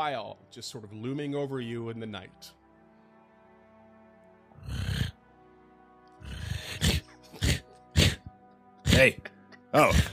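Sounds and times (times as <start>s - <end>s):
speech: 0.0s - 2.6s, 9.0s - 10.1s
imitated snoring: 4.6s - 5.2s, 6.2s - 9.2s.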